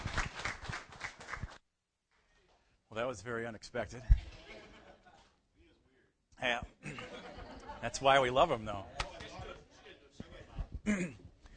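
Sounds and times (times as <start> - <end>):
audience clapping: 0.0 - 1.6
speech: 3.0 - 4.3, 6.4 - 7.0, 7.8 - 9.0, 10.9 - 11.2
laughter: 4.3 - 5.4, 6.8 - 8.3.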